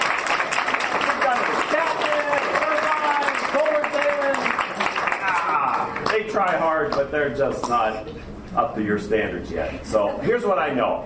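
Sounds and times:
round of applause from audience: 0.0 - 6.6
speech: 6.4 - 11.0.

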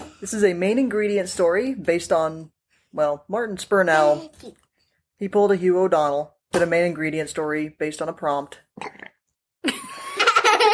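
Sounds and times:
speech: 0.2 - 4.6, 5.2 - 9.8
child's loud belch: 8.8 - 9.1.

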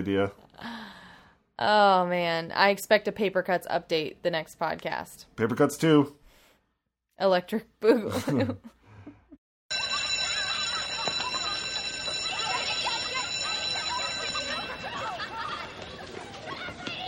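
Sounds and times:
speech: 0.0 - 0.8, 1.6 - 6.2, 7.2 - 8.8
laughter: 8.0 - 9.3, 9.9 - 17.0
bell ringing: 9.7 - 16.3.

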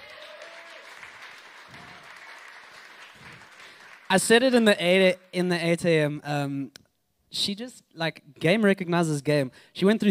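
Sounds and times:
audience applause: 0.0 - 4.1
speech: 4.1 - 10.0.

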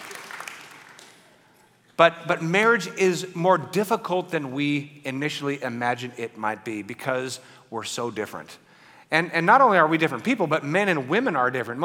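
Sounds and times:
audience applause: 0.0 - 1.3
speech: 2.0 - 11.8.

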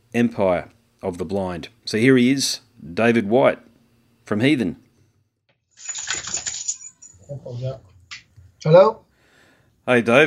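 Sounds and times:
speech: 0.2 - 3.7, 4.3 - 4.8, 7.3 - 7.9, 8.6 - 9.0, 9.9 - 10.2
dog collar rattling as dog shakes head: 5.8 - 7.3.

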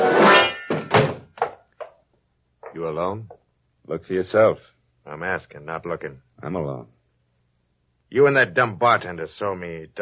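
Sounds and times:
door kicked shut: 0.7 - 1.6
speech: 2.8 - 7.0, 8.1 - 10.0.

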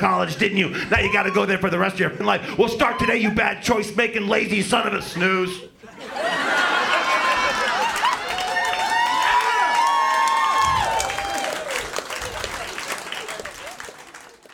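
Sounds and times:
speech: 0.0 - 6.2
laughter: 4.8 - 8.8
audience applause and cheering: 6.1 - 14.5.

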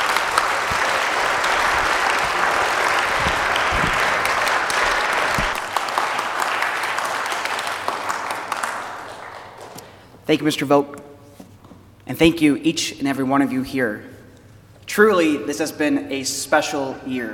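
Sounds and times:
audience applause: 0.0 - 9.8
speech: 10.3 - 11.0, 12.1 - 14.1, 15.0 - 17.3.

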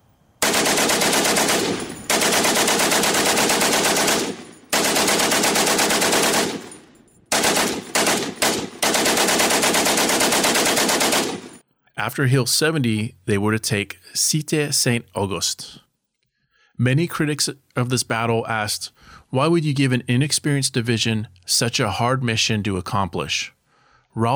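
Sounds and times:
German machine guns firing from Hill 70 at the Battle of Loos: 0.4 - 11.6
speech: 12.0 - 15.8, 16.8 - 23.6, 24.2 - 24.3.

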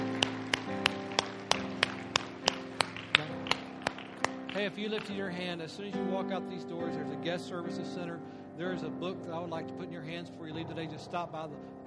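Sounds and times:
audience applauding: 0.0 - 5.4
speech: 4.6 - 11.8.

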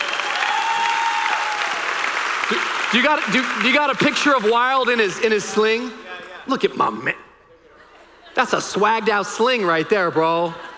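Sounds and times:
crowd applause and cheering: 0.0 - 5.9
speech: 2.5 - 7.2, 8.4 - 10.7
laughter: 7.5 - 10.7.

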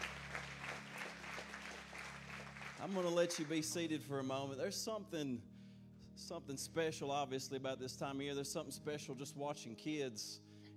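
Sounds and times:
audience applause: 0.0 - 3.9
speech: 2.8 - 5.5, 6.2 - 10.5.

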